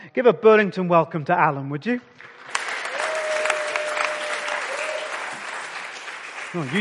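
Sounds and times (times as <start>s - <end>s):
speech: 0.1s - 2.6s, 6.5s - 6.7s
audience applause: 2.2s - 6.7s.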